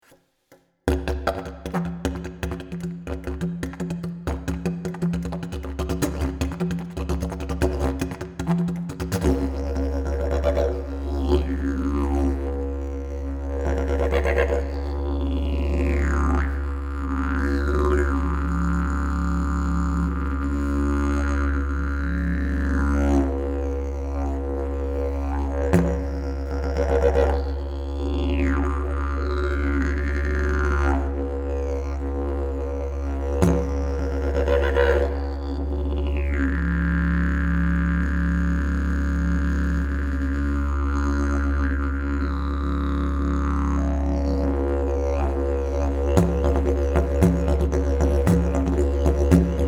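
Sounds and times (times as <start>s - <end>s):
didgeridoo: 0.9s - 49.6s.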